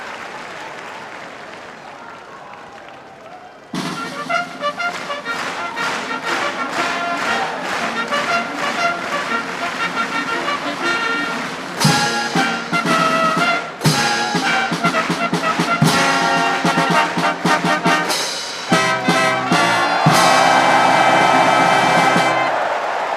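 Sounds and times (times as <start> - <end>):
crowd noise: 0.0 - 23.1
brass fanfare for the start of a horse race: 3.8 - 23.1.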